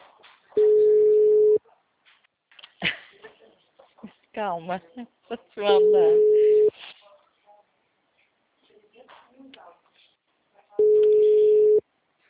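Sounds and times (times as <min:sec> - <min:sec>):
ringback tone of an unanswered phone call: 0:00.6 - 0:01.6, 0:05.8 - 0:06.7, 0:10.8 - 0:11.8
speech: 0:04.4 - 0:06.4.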